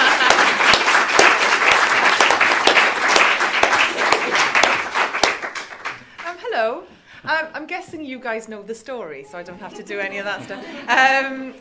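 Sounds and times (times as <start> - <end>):
laughter: 0.0 - 0.9, 3.9 - 4.9, 9.6 - 11.6
audience applause: 0.0 - 6.3
speech: 7.7 - 11.6.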